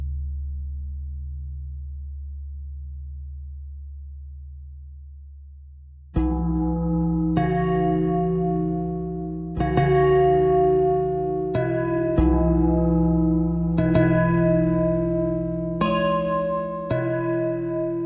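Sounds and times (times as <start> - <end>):
pentatonic bell thread: 6.2 - 18.0.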